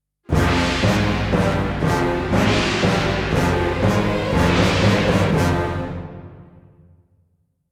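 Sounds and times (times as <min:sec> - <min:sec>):
epic orchestral stinger: 0:00.3 - 0:06.9.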